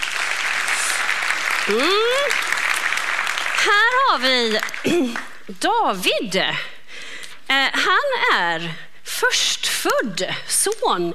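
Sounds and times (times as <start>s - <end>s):
audience applause: 0.0s - 5.4s
speech: 1.6s - 2.6s, 3.6s - 6.7s, 7.5s - 11.1s.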